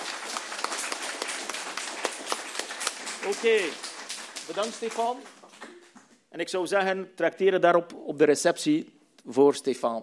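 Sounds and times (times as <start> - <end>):
audience applause: 0.0 - 5.9
speech: 3.2 - 3.9, 4.5 - 5.4, 6.4 - 10.0.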